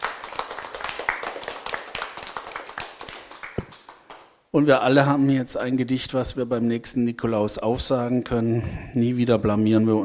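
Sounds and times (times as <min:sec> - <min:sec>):
audience applause: 0:00.0 - 0:04.3
speech: 0:04.5 - 0:10.0.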